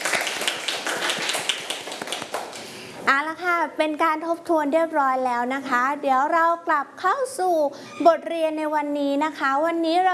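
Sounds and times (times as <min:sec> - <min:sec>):
children clapping for themselves: 0:00.0 - 0:02.7
speech: 0:03.1 - 0:10.1.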